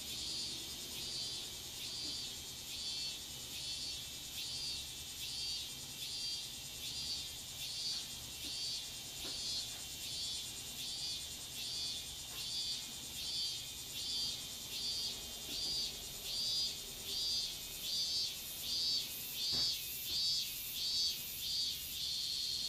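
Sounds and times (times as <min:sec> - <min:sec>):
cicadas in a garden: 0:00.0 - 0:22.6.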